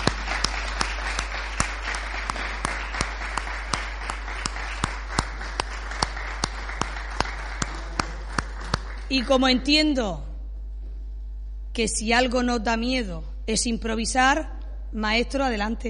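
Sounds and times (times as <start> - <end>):
audience applause: 0.0 - 9.4
speech: 9.1 - 10.3, 11.8 - 15.8.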